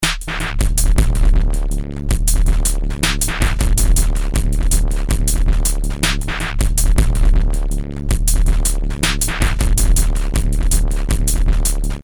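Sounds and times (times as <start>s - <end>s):
terrordub breakbeat: 0.0s - 12.0s.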